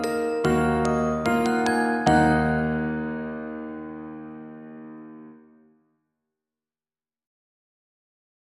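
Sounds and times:
piano and pitched percussion: 0.0 - 5.1.

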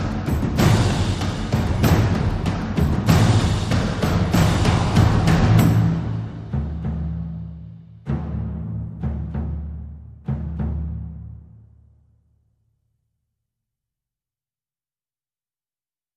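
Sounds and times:
percussion: 0.0 - 11.8.

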